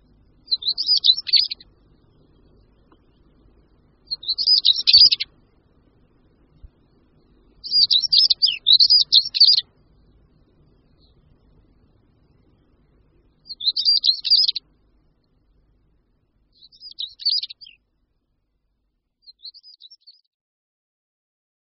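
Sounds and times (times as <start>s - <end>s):
European stonechat chattering song: 0.5s - 1.6s, 4.1s - 5.3s, 7.6s - 9.7s, 13.5s - 14.6s.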